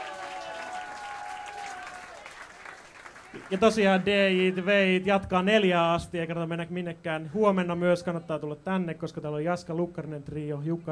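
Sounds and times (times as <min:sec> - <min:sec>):
audience applause: 0:00.0 - 0:04.7
speech: 0:03.3 - 0:10.8.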